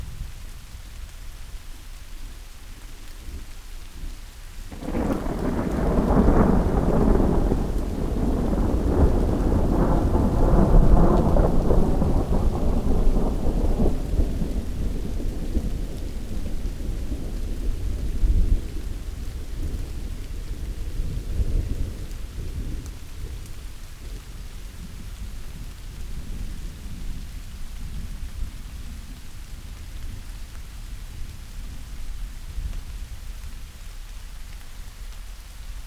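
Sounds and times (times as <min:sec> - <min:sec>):
rain: 0:00.0 - 0:35.8
thunder: 0:04.7 - 0:23.4.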